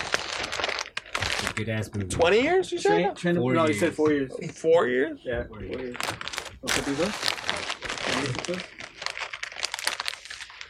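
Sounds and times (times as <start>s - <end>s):
snack bag crinkling: 0.0s - 1.8s, 5.8s - 10.6s
speech: 1.6s - 7.3s, 8.2s - 8.8s.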